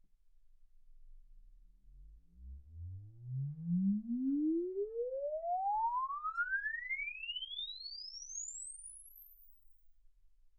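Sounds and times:
exponential sine sweep from 10 Hz to 24 kHz: 0:02.4 - 0:09.7.

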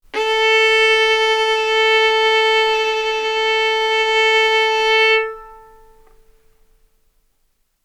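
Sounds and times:
violin bowed arco notes: 0:00.1 - 0:06.4.

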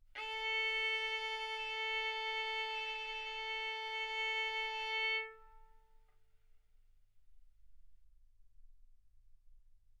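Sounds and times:
violin bowed arco notes: 0:00.2 - 0:05.9.

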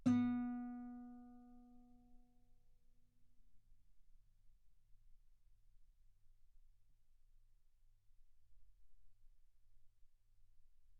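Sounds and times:
guitar note B3: 0:00.0 - 0:01.5.

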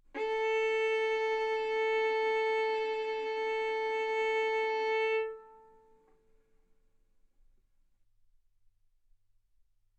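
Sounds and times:
violin arco on A string: 0:00.1 - 0:06.0.

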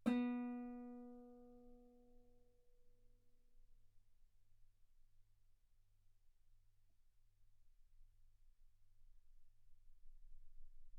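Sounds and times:
guitar B3 note on B string played fortissimo: 0:00.0 - 0:01.7.

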